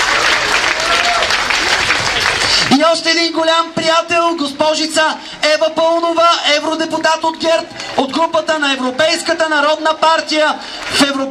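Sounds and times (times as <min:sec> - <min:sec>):
audience applause at a GERB political rally in Sofia: 0:00.0 - 0:02.8
speech: 0:02.9 - 0:11.2.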